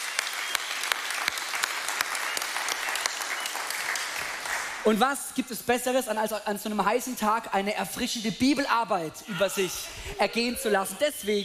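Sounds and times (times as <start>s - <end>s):
audience applause in church: 0.0s - 4.8s
speech: 4.8s - 11.4s.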